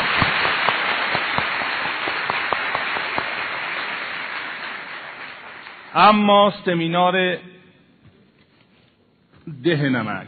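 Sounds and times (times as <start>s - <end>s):
seminar audience clapping: 0.0s - 6.3s
speech: 6.0s - 7.5s, 9.6s - 10.2s.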